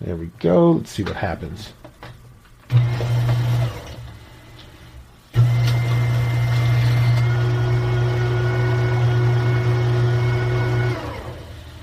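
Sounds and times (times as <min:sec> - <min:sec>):
speech: 0:00.0 - 0:01.8
shredder fan humming: 0:00.0 - 0:11.8
paper shredder shredding a water bill: 0:02.7 - 0:04.1, 0:05.4 - 0:11.6.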